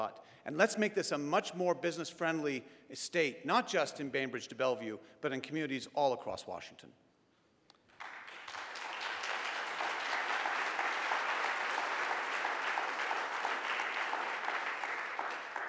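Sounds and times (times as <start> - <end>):
speech: 0.0 - 7.0
audience applause: 7.9 - 15.6.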